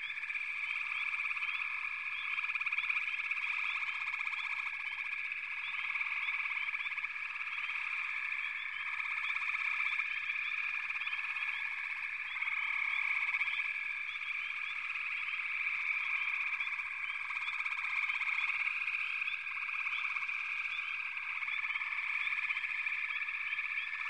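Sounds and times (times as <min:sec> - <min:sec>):
frog chorus: 0:00.0 - 0:24.0.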